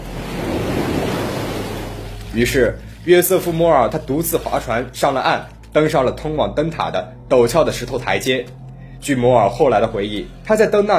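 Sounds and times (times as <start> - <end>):
sea waves crashing against rocks: 0.0 - 2.8
speech: 2.3 - 10.9.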